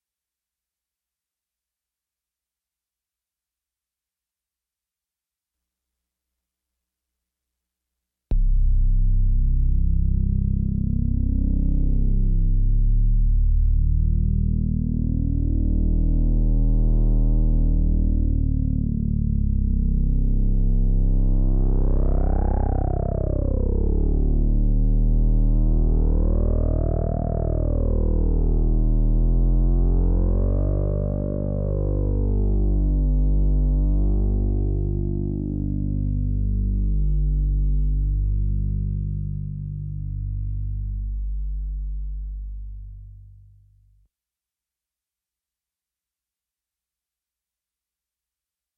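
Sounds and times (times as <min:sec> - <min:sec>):
bass build-up: 0:08.3 - 0:43.8.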